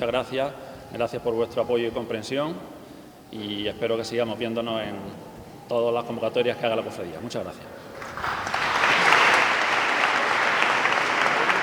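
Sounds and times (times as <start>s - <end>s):
speech: 0.0s - 8.4s
brotherhood members applauding: 7.6s - 11.6s.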